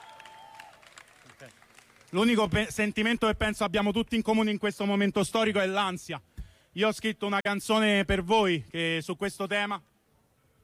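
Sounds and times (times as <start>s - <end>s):
audience applause: 0.0s - 2.2s
speech: 1.4s - 9.9s.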